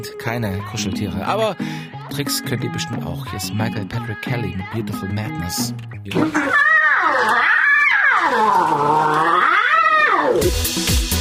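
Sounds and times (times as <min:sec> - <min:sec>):
speech: 0:00.0 - 0:07.4
lion cubs vocalizing: 0:06.2 - 0:10.5.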